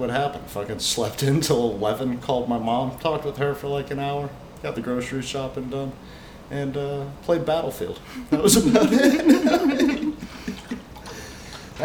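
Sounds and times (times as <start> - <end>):
speech: 0.0 - 9.9
laughter: 8.1 - 11.8
person slurping a drink: 10.0 - 11.8.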